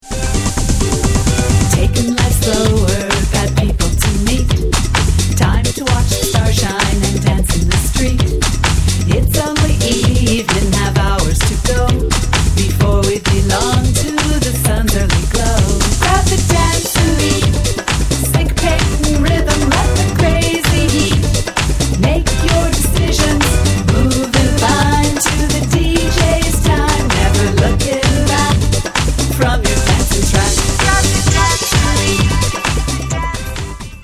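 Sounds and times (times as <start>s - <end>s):
dance beat: 0.0s - 34.0s.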